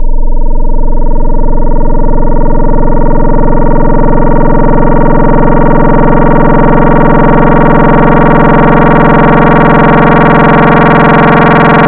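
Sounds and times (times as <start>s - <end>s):
FM wavetable synth: 0.0s - 11.8s.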